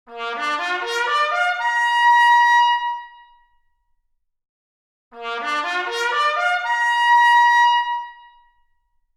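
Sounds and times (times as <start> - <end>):
trumpet arpeggio: 0.1 - 3.0, 5.2 - 8.3.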